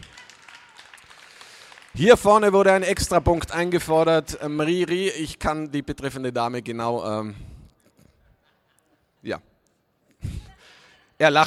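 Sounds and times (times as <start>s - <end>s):
audience applause: 0.0s - 3.0s
speech: 2.0s - 7.5s, 9.2s - 9.5s, 11.2s - 11.4s
laughter: 7.9s - 9.4s.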